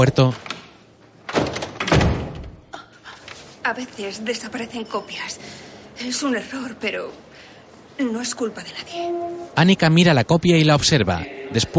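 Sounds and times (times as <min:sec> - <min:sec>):
speech: 0:00.0 - 0:00.5, 0:03.6 - 0:07.3, 0:08.0 - 0:11.7
office door slamming shut: 0:01.3 - 0:02.6.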